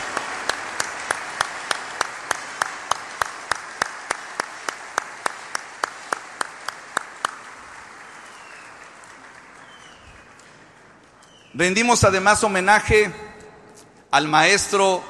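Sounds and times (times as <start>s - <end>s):
audience applause: 0.0s - 12.0s
speech: 11.6s - 13.2s, 14.1s - 15.0s.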